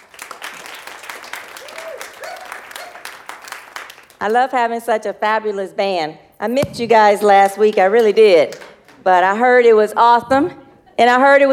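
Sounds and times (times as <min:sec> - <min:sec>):
audience applause: 0:00.0 - 0:04.2
speech: 0:04.2 - 0:11.5.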